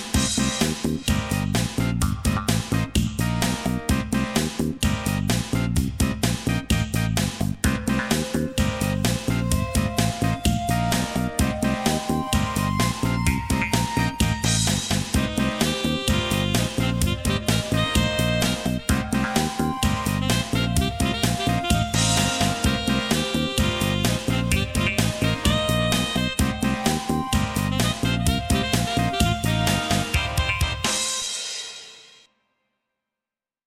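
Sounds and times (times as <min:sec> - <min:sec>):
jazz music: 0:00.1 - 0:31.6.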